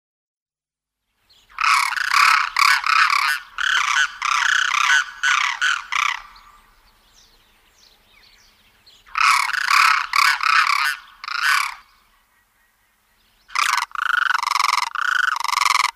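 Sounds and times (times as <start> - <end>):
Demoiselle crane raspy vibrating trumpeted calls: 1.5 - 6.8, 9.0 - 12.8, 13.5 - 15.9.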